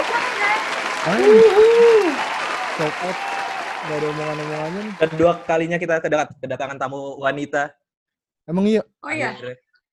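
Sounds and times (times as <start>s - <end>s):
audience applause: 0.0s - 6.0s
speech: 1.0s - 1.8s, 2.8s - 7.8s, 8.5s - 9.6s
voice letting out drawn-out cheer: 1.0s - 5.4s.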